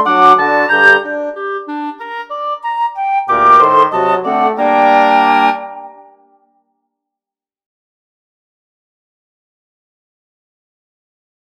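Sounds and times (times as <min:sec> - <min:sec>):
wind quintet playing: 0:00.0 - 0:06.4.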